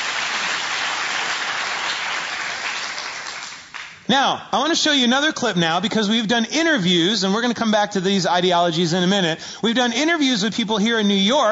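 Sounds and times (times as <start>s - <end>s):
crowd applause: 0.0s - 4.0s
speech: 4.1s - 11.4s.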